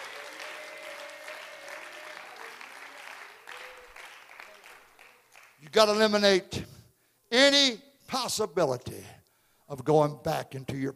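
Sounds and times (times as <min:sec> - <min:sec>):
audience clapping hands: 0:00.0 - 0:06.0
speech: 0:05.7 - 0:06.7, 0:07.3 - 0:10.9.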